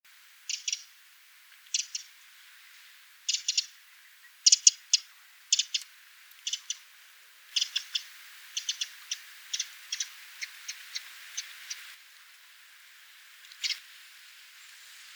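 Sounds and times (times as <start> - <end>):
faint hiss: 0.1 - 15.1
Eurasian wren ticking calls: 0.4 - 1.0, 1.6 - 2.3, 3.2 - 6.9, 7.5 - 12.0, 13.4 - 13.8.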